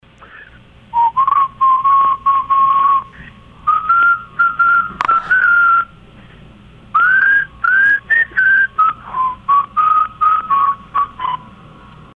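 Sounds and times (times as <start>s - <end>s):
whistle: 0.9s - 6.0s, 6.9s - 11.5s.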